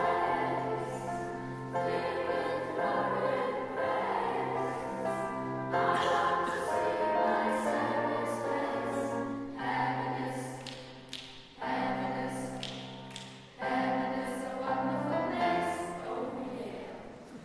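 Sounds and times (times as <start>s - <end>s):
lower school choir singing: 0.0s - 10.9s, 11.6s - 12.8s, 13.6s - 17.4s.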